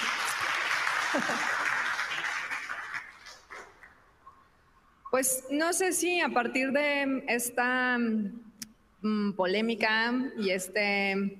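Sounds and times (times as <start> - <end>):
audience applause: 0.0 - 3.9
speech: 1.1 - 1.6, 5.2 - 11.3.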